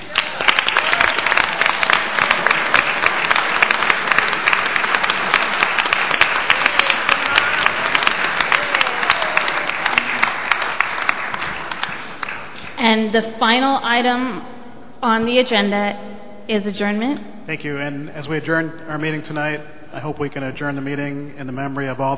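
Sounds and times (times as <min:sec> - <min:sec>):
round of applause from a crowd: 0:00.0 - 0:12.8
speech: 0:13.0 - 0:22.1.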